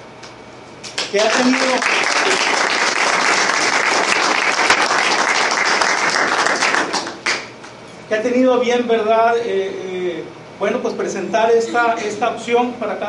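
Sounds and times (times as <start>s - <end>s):
audience applause: 1.0s - 7.5s
speech: 1.1s - 3.4s, 8.1s - 13.0s.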